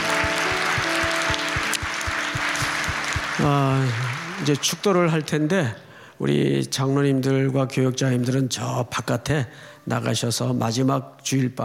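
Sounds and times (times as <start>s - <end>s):
low thumping beat: 0.0s - 3.6s
audience applause: 0.0s - 5.8s
speech: 3.4s - 11.6s.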